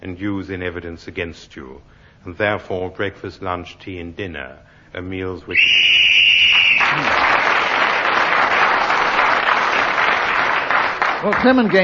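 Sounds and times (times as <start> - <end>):
speech: 0.0 - 6.2, 11.2 - 11.8
shrill whistle blast ending the round: 5.5 - 7.1
loud applause: 5.8 - 11.8.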